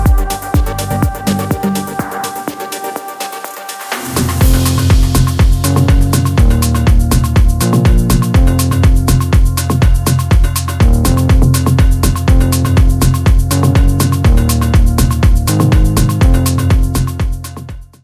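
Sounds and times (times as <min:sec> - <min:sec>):
melodic and percussive Afro Tech DJ mix: 0:00.0 - 0:18.0.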